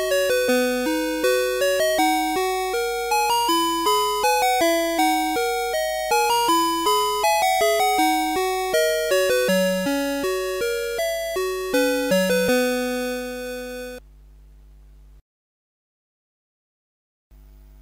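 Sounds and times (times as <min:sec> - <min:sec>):
A chord: 0:00.0 - 0:14.0.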